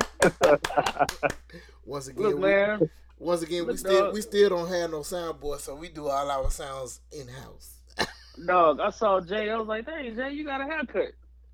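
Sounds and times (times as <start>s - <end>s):
applause, hand clapping: 0.0s - 1.6s
laughter: 0.0s - 2.7s, 8.0s - 8.9s
speech: 0.2s - 11.2s.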